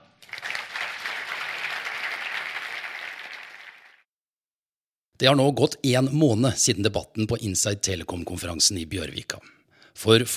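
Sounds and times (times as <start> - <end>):
audience applause: 0.2 - 4.0
speech: 5.2 - 10.3.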